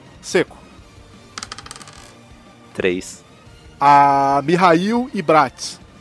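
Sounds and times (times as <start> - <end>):
speech: 0.2 - 0.6, 2.8 - 3.2, 3.8 - 5.8
twenty-sided die being rolled: 1.4 - 2.2.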